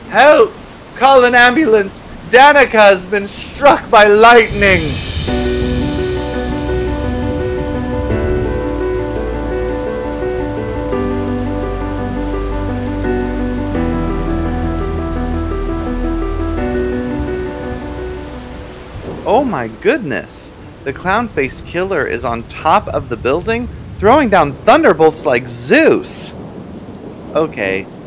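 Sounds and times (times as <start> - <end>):
heavy pouring rain: 0.0 - 28.0
speech: 0.1 - 5.6, 19.4 - 26.4, 27.3 - 27.9
low sustained musical tones shifting chords: 4.5 - 22.5.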